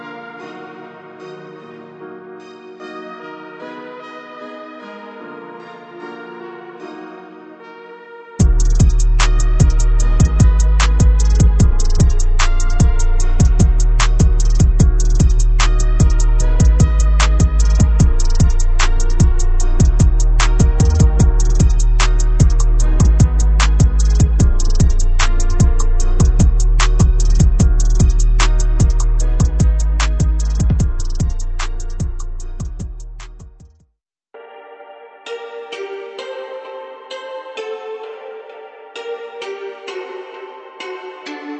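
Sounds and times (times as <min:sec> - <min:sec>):
trap drum kit: 0:08.4 - 0:33.8.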